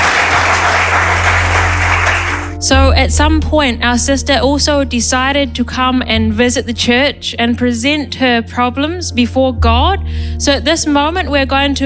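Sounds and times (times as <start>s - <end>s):
church congregation clapping: 0.0s - 2.6s
speech: 2.6s - 11.8s.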